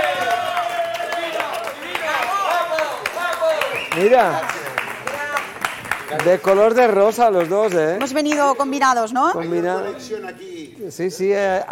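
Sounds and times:
audience applause: 0.0 - 8.7
speech: 4.0 - 4.6, 6.1 - 11.7.

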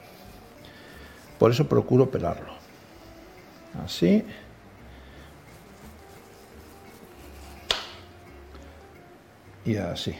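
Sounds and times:
speech: 1.4 - 2.6, 3.8 - 4.5, 9.7 - 10.1
knife slicing a peeled tomato: 5.4 - 8.2
knife tap on cutting board: 7.7 - 8.0.

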